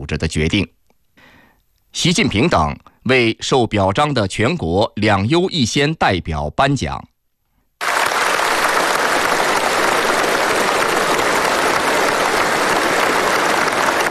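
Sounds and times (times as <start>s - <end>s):
speech: 0.0s - 0.8s, 2.0s - 7.1s
audience applause: 7.8s - 14.0s.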